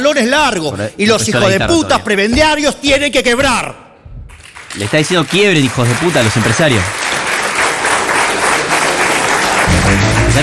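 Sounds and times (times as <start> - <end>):
speech: 0.0 - 3.8, 4.8 - 7.0, 9.9 - 10.4
audience applauding a political speech: 4.3 - 10.4.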